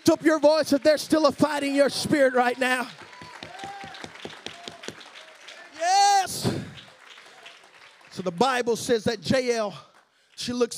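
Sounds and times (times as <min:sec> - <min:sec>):
audience clapping hands: 0:00.0 - 0:10.7
speech: 0:00.1 - 0:03.1, 0:08.2 - 0:10.7.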